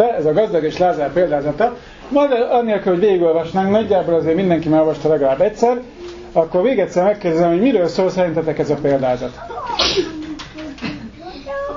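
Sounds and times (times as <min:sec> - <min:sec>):
speech: 0:00.0 - 0:10.2
faint low voices murmuring: 0:09.1 - 0:11.7
person sneezing: 0:09.7 - 0:10.2.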